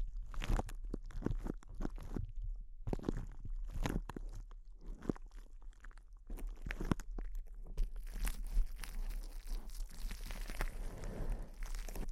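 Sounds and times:
intense close-up crinkles: 0.0s - 12.1s.

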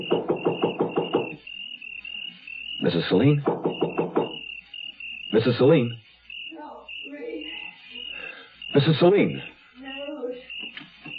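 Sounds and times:
knocking on a door: 0.0s - 1.4s, 3.3s - 4.4s
speech: 2.8s - 3.6s, 5.3s - 6.0s, 8.8s - 9.5s.

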